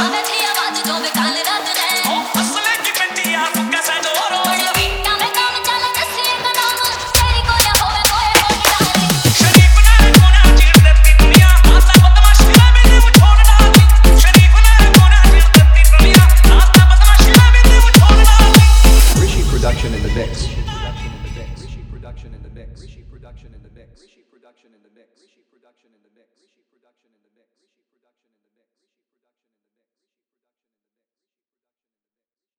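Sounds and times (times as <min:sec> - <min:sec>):
hard bass remix song: 0:00.0 - 0:22.6.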